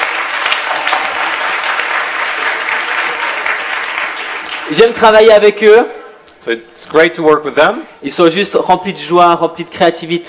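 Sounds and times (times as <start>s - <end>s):
crowd applause: 0.0s - 5.0s
speech: 4.7s - 10.2s.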